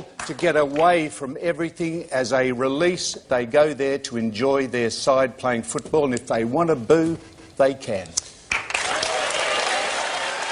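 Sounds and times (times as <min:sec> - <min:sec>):
speech: 0:00.3 - 0:08.2
studio audience clapping: 0:08.5 - 0:10.4
studio audience cheering: 0:08.7 - 0:10.4.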